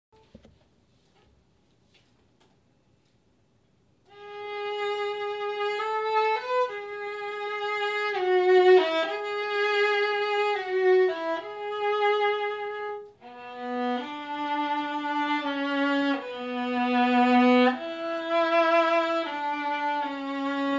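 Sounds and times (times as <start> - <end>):
viola: 4.1 - 20.7.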